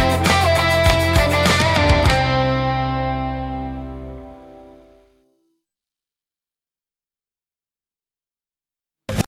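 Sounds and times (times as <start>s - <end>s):
instrumental music: 0.0s - 5.6s.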